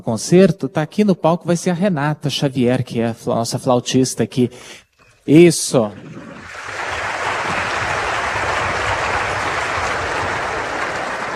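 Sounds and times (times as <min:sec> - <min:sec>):
speech: 0:00.0 - 0:06.4
audience applause: 0:05.9 - 0:11.3.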